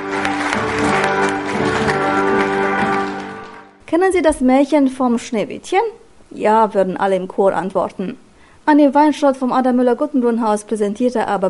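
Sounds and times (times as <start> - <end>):
audience applause in a hall: 0.0 - 3.8
speech: 3.9 - 11.4.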